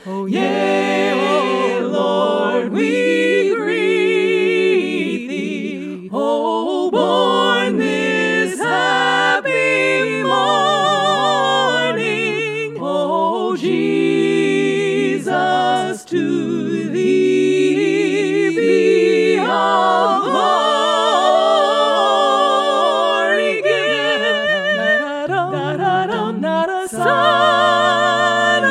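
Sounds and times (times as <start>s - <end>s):
SATB choir singing a carol: 0.0s - 28.6s.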